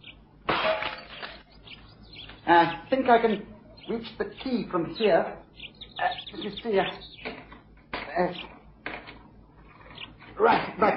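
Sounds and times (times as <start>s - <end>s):
faint chirping: 0.0s - 10.4s
window pane being smashed in: 0.5s - 1.5s
speech: 2.5s - 5.4s, 6.3s - 7.1s, 8.2s - 8.5s, 10.4s - 10.9s.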